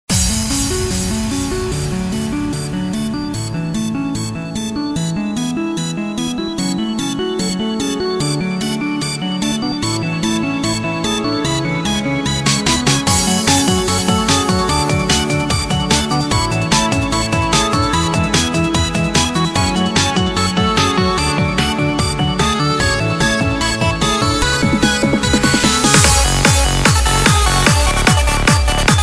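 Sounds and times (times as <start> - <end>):
techno music: 0.1 - 29.0.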